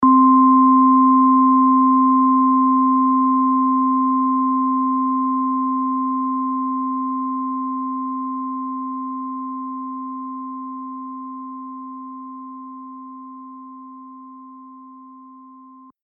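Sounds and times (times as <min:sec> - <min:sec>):
synth bell: 0:00.0 - 0:15.9.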